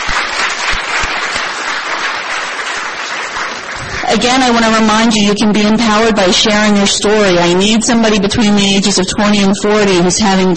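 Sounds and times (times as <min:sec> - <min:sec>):
audience applause: 0:00.0 - 0:04.6
speech: 0:04.1 - 0:10.5.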